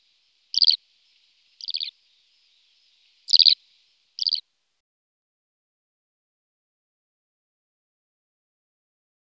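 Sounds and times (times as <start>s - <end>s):
Eurasian skylark singing: 0.0s - 4.4s.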